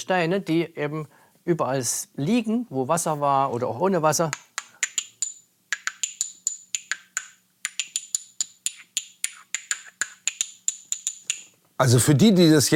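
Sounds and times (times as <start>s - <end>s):
speech: 0.0s - 4.5s, 11.8s - 12.7s
stone clicking in opening and closing hand: 4.3s - 11.5s.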